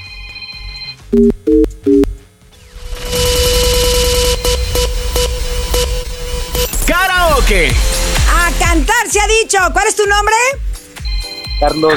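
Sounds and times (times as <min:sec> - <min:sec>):
telephone tone humming: 0:00.0 - 0:02.2, 0:03.1 - 0:06.7, 0:11.0 - 0:11.9
telephone dialing beeps: 0:00.1 - 0:02.1
speech: 0:01.1 - 0:02.0, 0:08.7 - 0:10.6, 0:11.6 - 0:11.9
loud noisy burst with steady tone: 0:02.7 - 0:09.0.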